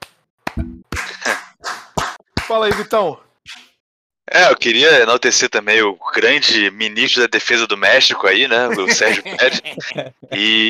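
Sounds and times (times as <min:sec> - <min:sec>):
hand clapping: 0:00.0 - 0:03.1
speech: 0:02.5 - 0:03.6, 0:04.4 - 0:10.6
laughter: 0:08.4 - 0:10.6.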